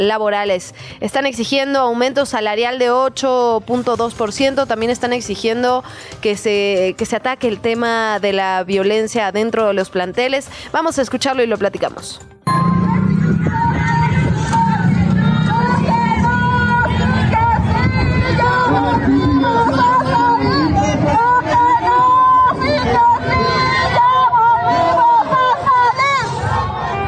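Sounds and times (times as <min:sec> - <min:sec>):
speech: 0:00.0 - 0:12.6
crowd of demonstrators protesting and shouting: 0:12.5 - 0:27.0.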